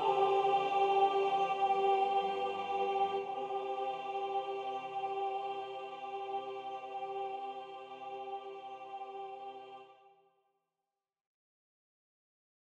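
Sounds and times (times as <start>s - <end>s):
soprano singing: 0.0s - 10.0s.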